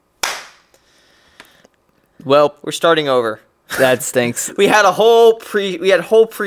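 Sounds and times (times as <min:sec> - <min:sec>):
single hand clap for audio sync: 0:00.2 - 0:00.8
speech: 0:02.2 - 0:06.4.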